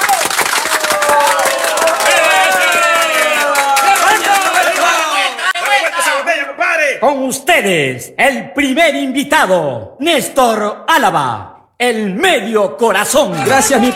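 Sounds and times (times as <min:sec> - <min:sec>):
audience applause: 0:00.0 - 0:06.4
cheering and shouting voices: 0:00.0 - 0:07.0, 0:13.3 - 0:13.9
speech: 0:07.0 - 0:13.9.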